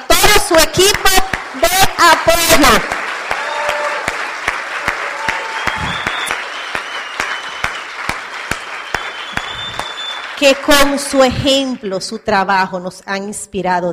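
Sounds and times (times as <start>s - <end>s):
speech: 0.5s - 3.0s, 10.4s - 13.9s
audience applause: 1.2s - 11.2s.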